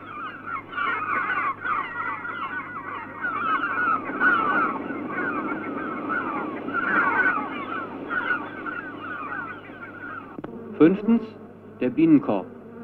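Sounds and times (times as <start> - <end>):
seagulls crying: 0.0 - 10.4
speech: 10.8 - 12.5.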